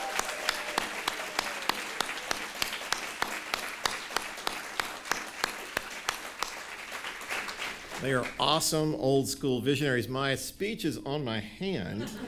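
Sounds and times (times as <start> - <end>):
crowd applauding: 0.0 - 8.9
speech: 8.0 - 12.2
laughter: 11.9 - 12.2.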